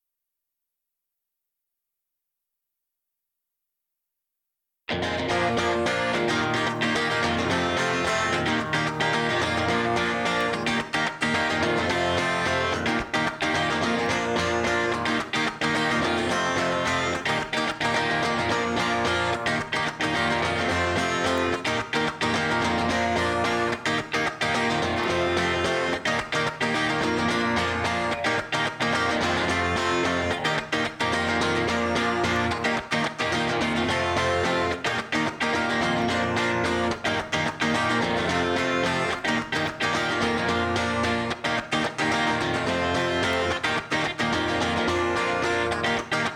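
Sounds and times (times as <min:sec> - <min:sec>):
guitar: 0:04.9 - 0:46.3.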